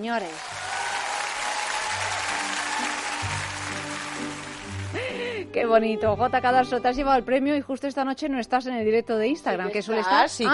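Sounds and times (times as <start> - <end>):
speech: 0.0 - 0.7, 5.5 - 10.5
big arena crowd applauding and cheering: 0.0 - 5.2.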